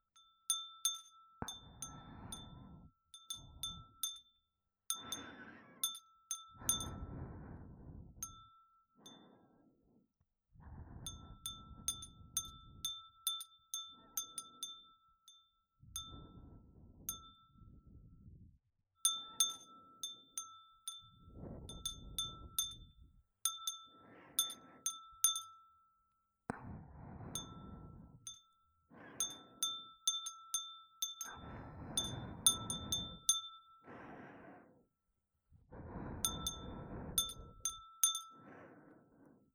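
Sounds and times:
glass wind chime: 0.0s - 7.1s, 8.2s - 9.4s, 11.1s - 16.5s, 17.1s - 17.8s, 19.0s - 26.2s, 27.3s - 33.9s, 36.2s - 38.5s
breathing: 1.4s - 4.0s, 4.9s - 12.9s, 15.9s - 18.4s, 20.9s - 23.1s, 23.7s - 25.4s, 26.5s - 29.9s, 31.2s - 39.5s.

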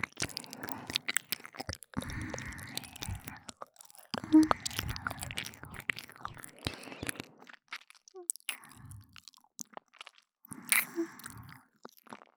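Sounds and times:
ear licking on the left: 0.2s - 7.3s, 10.5s - 11.6s.

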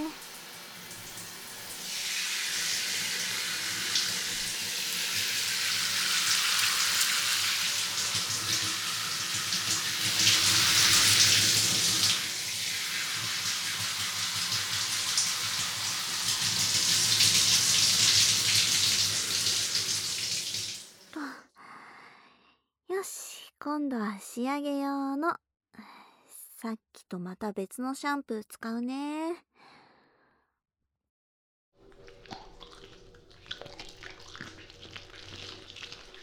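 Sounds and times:
shower water rinsing hair: 0.0s - 21.2s, 31.8s - 36.2s
speech: 24.4s - 25.4s, 26.6s - 29.5s.

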